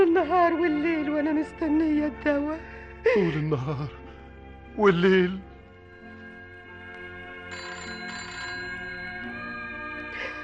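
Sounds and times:
sustained tonal background: 0.0 - 10.4
speech: 0.2 - 4.0, 4.8 - 5.5
telephone ringing with bright bell-like electronic tone: 7.3 - 10.4.

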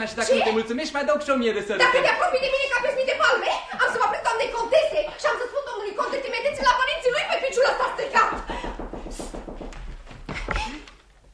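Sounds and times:
speech: 0.0 - 6.8
count knocking on a door: 8.1 - 10.5.

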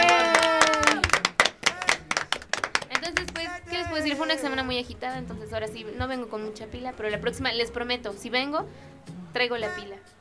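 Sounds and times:
audience clapping for a man's birthday: 0.0 - 4.6
sustained tone: 3.1 - 9.8
speech: 4.3 - 10.1.

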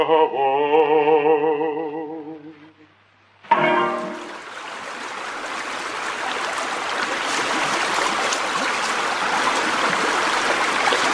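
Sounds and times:
speech: 0.0 - 2.0
river water rushing: 3.5 - 11.1.

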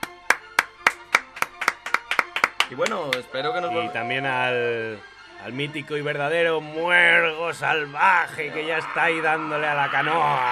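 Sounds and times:
small group clapping to send off departing friends: 0.0 - 3.6
speech: 2.7 - 10.5.

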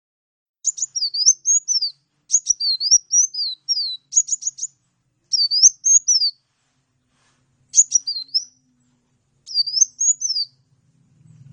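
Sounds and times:
Oriental magpie-robin singing lively: 0.6 - 6.4, 7.7 - 10.8.

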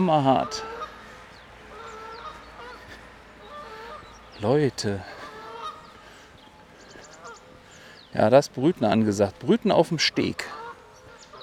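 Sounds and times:
speech: 0.0 - 0.7, 4.4 - 5.2, 8.1 - 10.6
brooding bird honking defensively: 0.0 - 4.4, 5.0 - 8.0, 10.1 - 11.4.

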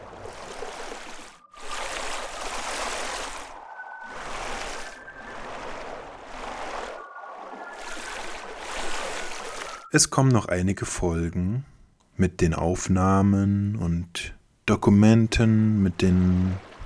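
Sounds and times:
river water flowing: 0.0 - 9.9
speech: 9.9 - 16.7.

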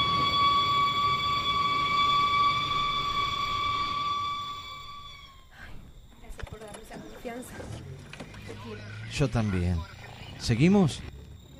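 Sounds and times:
siren: 0.0 - 5.6
speech: 9.2 - 11.1.

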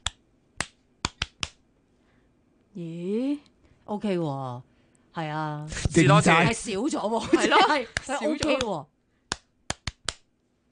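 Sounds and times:
person clapping hands: 0.0 - 1.6, 7.9 - 10.3
speech: 2.8 - 8.9
laughter: 6.0 - 8.4.

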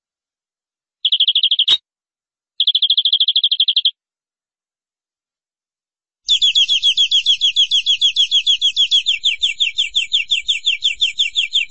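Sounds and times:
canary song: 1.0 - 1.8, 2.6 - 4.0, 6.2 - 11.7.

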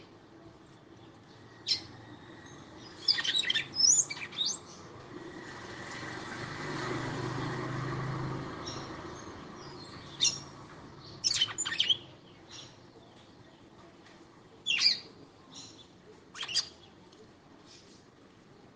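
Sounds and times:
female red-cowled cardinal singing sharp high chirps and twitters: 1.0 - 6.1, 7.2 - 13.7, 14.6 - 17.0.

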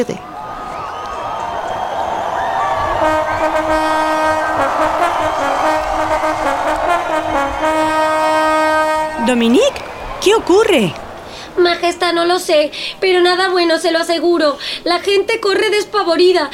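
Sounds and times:
speech: 0.0 - 0.3, 9.3 - 11.0, 11.6 - 16.5
bugles sounding an alarm call: 0.6 - 11.3.

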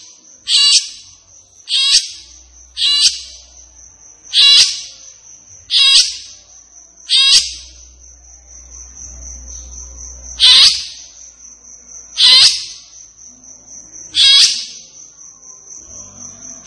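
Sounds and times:
captive grey-cheeked bulbul chattering: 0.0 - 3.6, 4.3 - 6.4, 7.1 - 7.9, 10.3 - 11.2, 12.0 - 13.0, 14.1 - 15.0.

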